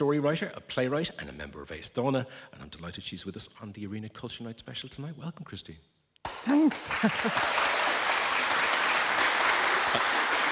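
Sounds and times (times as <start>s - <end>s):
speech: 0.0s - 7.7s
crowd applause: 6.3s - 10.5s.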